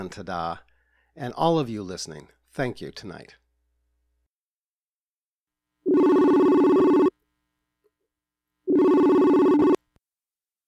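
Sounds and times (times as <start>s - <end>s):
speech: 0.0s - 3.4s
telephone ringing for incoming call: 5.9s - 7.1s, 8.7s - 9.8s.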